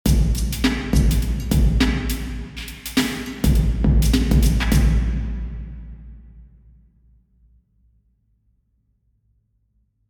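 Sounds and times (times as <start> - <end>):
drum in a cathedral: 0.0 - 6.7.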